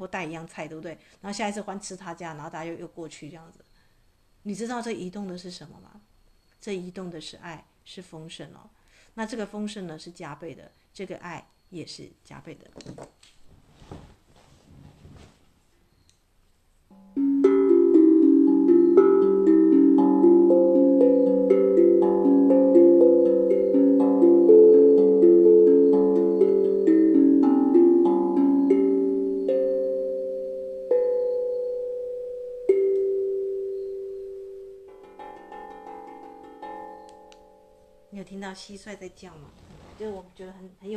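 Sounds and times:
speech: 0.0s - 3.7s, 4.4s - 14.0s, 38.6s - 40.9s
steel tongue drum being struck: 16.9s - 38.2s.

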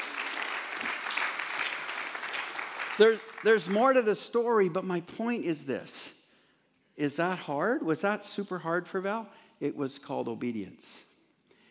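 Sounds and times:
audience applauding: 0.0s - 4.0s
speech: 3.0s - 6.2s, 7.0s - 11.1s.

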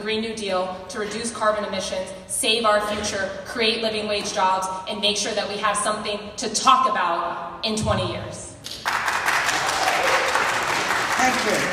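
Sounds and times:
speech: 0.0s - 8.5s
audience applause: 8.8s - 11.7s.

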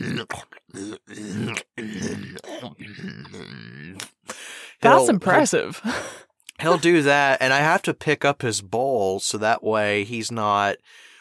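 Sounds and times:
person imitating a pig eating with grunts and snorts: 0.0s - 4.1s
speech: 4.9s - 11.1s.

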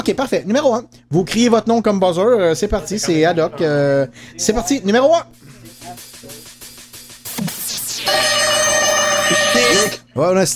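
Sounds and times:
speech: 0.0s - 6.4s, 9.6s - 10.5s
tinny electronic rendition of a film theme tune: 5.9s - 10.0s.

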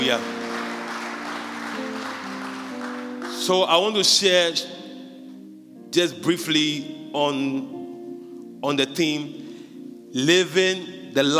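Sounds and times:
crowd clapping: 0.0s - 3.7s
sustained keyboard chords: 0.0s - 11.3s
speech: 0.1s - 0.4s, 3.4s - 4.8s, 5.9s - 7.8s, 8.6s - 9.4s, 10.1s - 11.3s.

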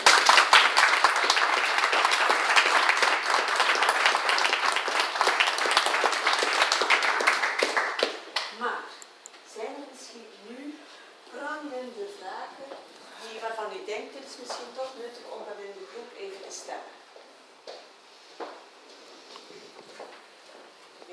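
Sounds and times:
crowd applauding: 0.0s - 8.5s.

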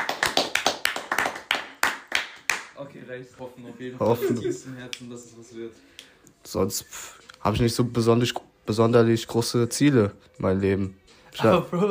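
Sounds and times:
small group of young men clapping: 0.0s - 2.8s
speech: 2.8s - 11.8s.

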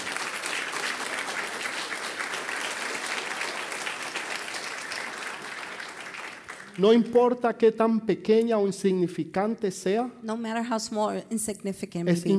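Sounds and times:
audience applause: 0.0s - 7.1s
speech: 6.8s - 12.3s.

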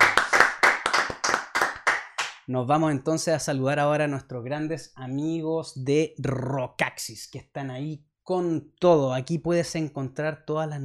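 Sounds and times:
applause: 0.0s - 2.4s
speech: 2.5s - 10.8s.

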